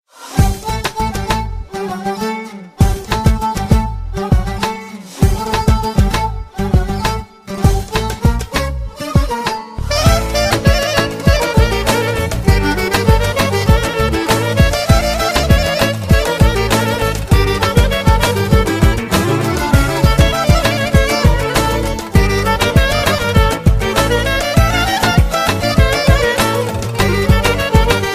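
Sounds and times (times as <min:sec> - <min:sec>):
Albanian valle dance music: 0:00.3 - 0:28.1.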